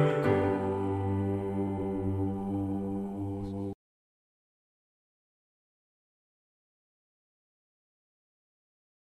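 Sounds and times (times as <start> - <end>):
bass: 0.0 - 3.8.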